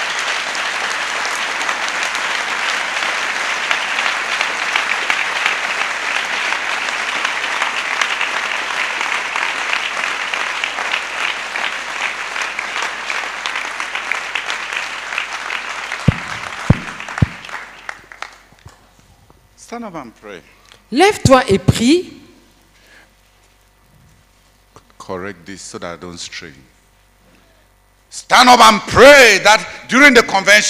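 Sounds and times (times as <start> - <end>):
audience clapping: 0.0 - 19.0
speech: 19.8 - 22.2, 25.1 - 26.8, 28.3 - 30.6.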